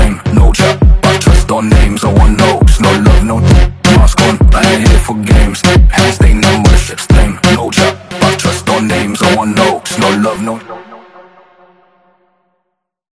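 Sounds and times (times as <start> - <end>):
sped up funk music: 0.0 - 10.4.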